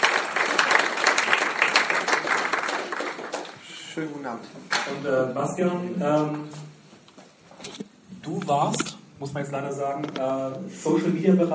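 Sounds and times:
audience applause: 0:00.0 - 0:04.8
speech: 0:04.0 - 0:06.8, 0:07.7 - 0:11.5.

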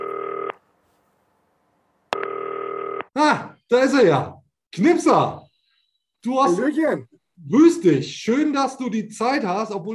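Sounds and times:
telephone ringing: 0:00.0 - 0:00.6, 0:02.1 - 0:03.1
speech: 0:03.2 - 0:05.4, 0:06.2 - 0:09.9.

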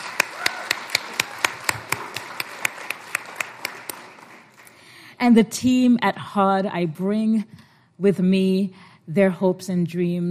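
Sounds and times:
audience applause: 0:00.0 - 0:04.9
speech: 0:05.2 - 0:10.3.

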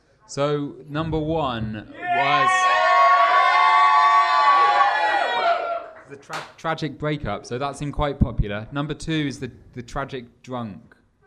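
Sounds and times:
speech: 0:00.3 - 0:02.7, 0:06.1 - 0:11.0
crowd cheering loudly with whoops: 0:01.9 - 0:06.5.

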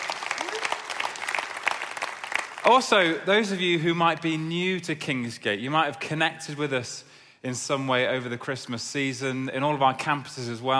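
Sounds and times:
audience clapping at a Kingsgate gathering: 0:00.0 - 0:03.3
speech: 0:02.6 - 0:10.7.

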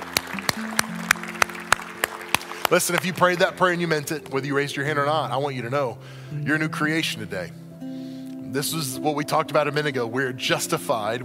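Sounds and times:
hand claps: 0:00.0 - 0:04.5
speech: 0:02.7 - 0:07.6, 0:08.5 - 0:11.2.

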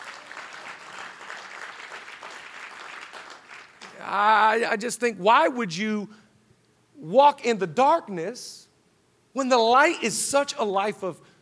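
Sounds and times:
five people clapping: 0:00.0 - 0:04.1
speech: 0:04.0 - 0:06.2, 0:07.0 - 0:08.6, 0:09.3 - 0:11.3.

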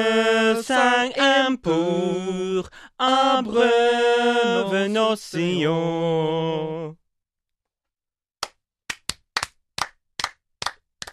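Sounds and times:
speech: 0:00.0 - 0:07.0
clapping: 0:08.4 - 0:11.1.

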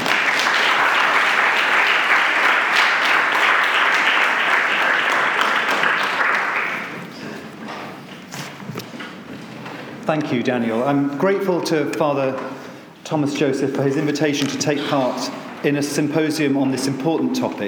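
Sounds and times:
crowd applauding: 0:00.0 - 0:07.2
speech: 0:10.1 - 0:17.6.

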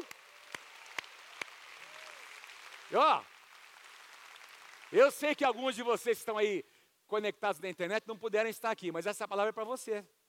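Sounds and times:
audience applause: 0:00.0 - 0:05.6
speech: 0:02.9 - 0:03.3, 0:04.9 - 0:10.2.

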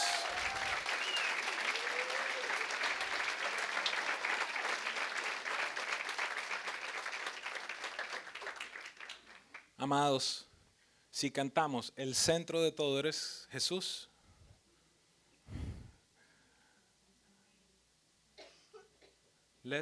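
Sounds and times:
audience applause: 0:00.0 - 0:09.6
speech: 0:09.8 - 0:10.5, 0:11.1 - 0:14.1.

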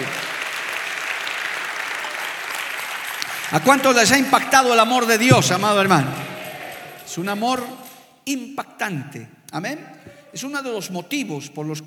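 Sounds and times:
audience applauding: 0:00.0 - 0:07.9
speech: 0:03.5 - 0:06.2, 0:07.1 - 0:11.8.

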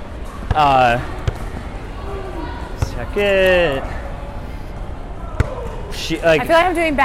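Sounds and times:
basketball bouncing on a court: 0:00.3 - 0:01.7, 0:02.8 - 0:03.2
speech: 0:00.6 - 0:01.2, 0:03.0 - 0:04.0, 0:05.9 - 0:07.0.

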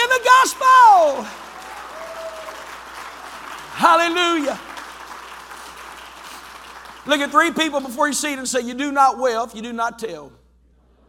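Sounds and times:
crowd clapping: 0:00.0 - 0:08.6
speech: 0:03.9 - 0:04.7, 0:07.1 - 0:10.4.

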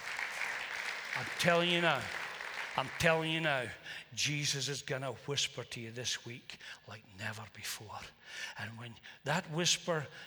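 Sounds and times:
audience applause: 0:00.0 - 0:03.8
speech: 0:01.2 - 0:02.2, 0:02.8 - 0:10.2.

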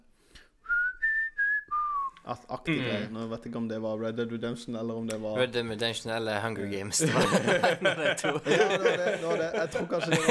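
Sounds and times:
whistled western-style melody: 0:00.6 - 0:02.2
speech: 0:02.3 - 0:10.2
laughter: 0:07.0 - 0:10.2.

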